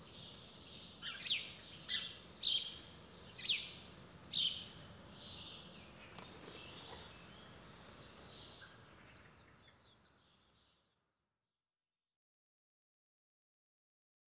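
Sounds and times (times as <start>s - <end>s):
birds twittering on a summer morning: 0.0s - 10.2s.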